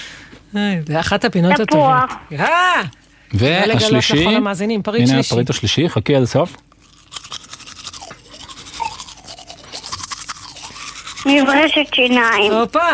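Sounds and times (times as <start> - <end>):
speech: 0.5 - 6.7, 11.3 - 12.9
toothbrush scrubbing: 6.8 - 12.9.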